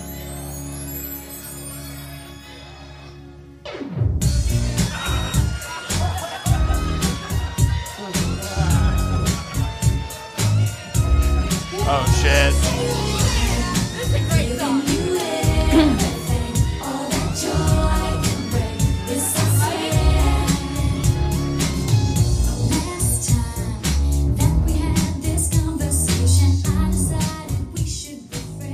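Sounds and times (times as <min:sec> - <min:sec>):
1990s pop song recording playing: 0:04.2 - 0:28.7
laughter: 0:04.8 - 0:09.6, 0:11.7 - 0:16.5.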